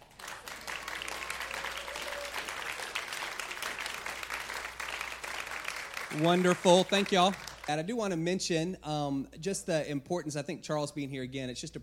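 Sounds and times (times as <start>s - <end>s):
large audience applause: 0.0s - 7.7s
speech: 6.1s - 11.8s.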